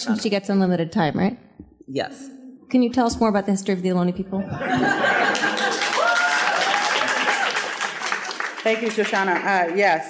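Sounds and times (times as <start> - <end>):
speech: 0.0 - 5.5, 8.7 - 10.0
laughter: 4.4 - 7.4
cheering crowd: 5.1 - 8.5.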